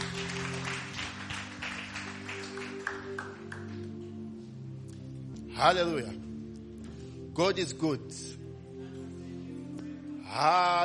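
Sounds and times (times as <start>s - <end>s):
audience applause: 0.0s - 3.8s
speech: 5.6s - 6.3s, 7.4s - 8.4s, 10.3s - 10.8s.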